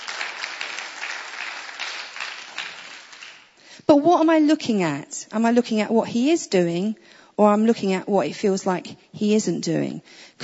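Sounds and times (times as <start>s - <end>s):
crowd of people applauding: 0.0s - 3.6s
speech: 3.9s - 10.4s.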